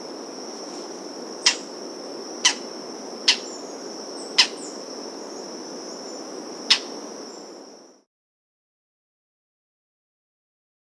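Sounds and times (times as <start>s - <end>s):
Lineated Foliage-gleaner Syndactyla subularis calling: 0.6s - 1.8s, 2.4s - 7.6s.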